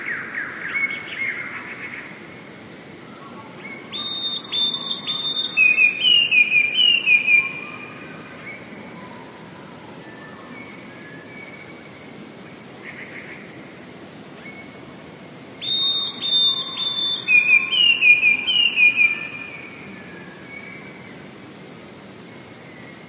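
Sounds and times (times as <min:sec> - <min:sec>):
Eurasian blue tit high whistles and rapid tumbling trill: 0:03.9 - 0:07.9, 0:15.6 - 0:19.6.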